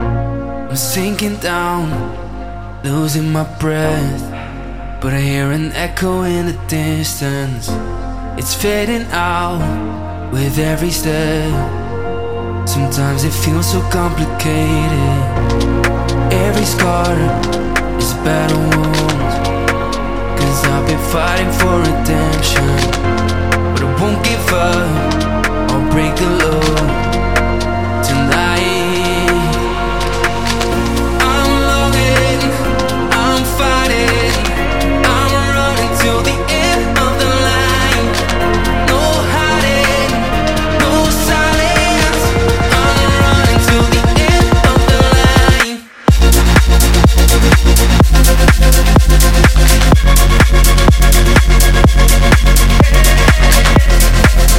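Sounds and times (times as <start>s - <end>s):
construction kit full music mix: 0.0s - 54.5s.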